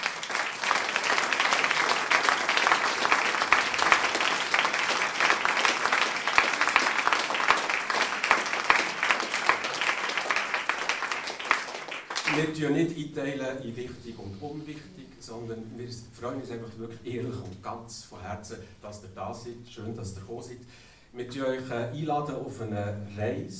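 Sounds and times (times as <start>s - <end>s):
audience applause: 0.0s - 12.8s
speech: 12.6s - 23.5s.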